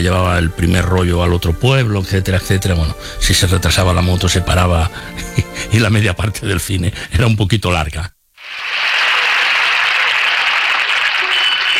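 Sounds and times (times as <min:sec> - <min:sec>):
speech: 0:00.0 - 0:08.6
crowd applauding: 0:08.4 - 0:11.7.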